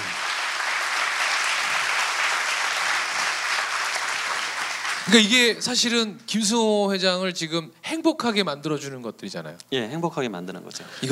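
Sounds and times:
audience applause: 0.0s - 5.3s
speech: 5.1s - 11.1s.

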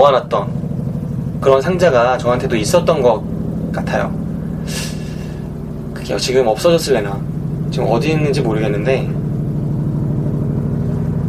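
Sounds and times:
speech: 0.0s - 0.6s, 1.4s - 4.9s, 6.1s - 9.2s
helicopter flying overhead: 0.0s - 11.2s.

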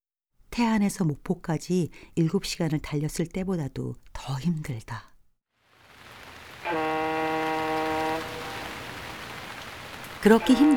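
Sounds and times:
speech: 0.6s - 5.1s, 10.2s - 10.7s
heavy rain pouring: 5.6s - 10.7s
loud sustained horn blast: 6.1s - 10.7s.

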